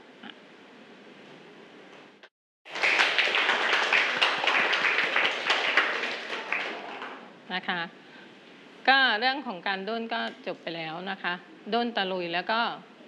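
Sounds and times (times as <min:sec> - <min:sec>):
students clapping hands in thanks: 0:02.7 - 0:07.3
speech: 0:07.6 - 0:08.0, 0:08.8 - 0:12.9.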